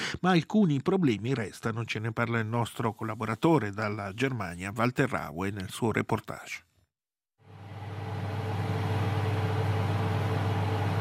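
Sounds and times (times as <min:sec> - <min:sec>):
speech: 0:00.2 - 0:06.7
large ventilation fans roaring in an industrial hall: 0:07.5 - 0:10.9.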